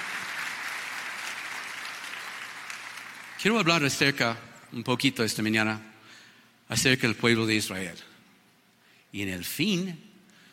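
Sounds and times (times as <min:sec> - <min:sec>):
audience applause: 0:00.0 - 0:03.9
speech: 0:03.4 - 0:05.9, 0:06.7 - 0:08.1, 0:09.1 - 0:10.1.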